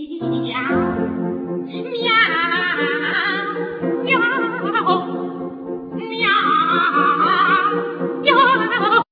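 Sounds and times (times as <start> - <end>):
duet singing: 0.2 - 9.1.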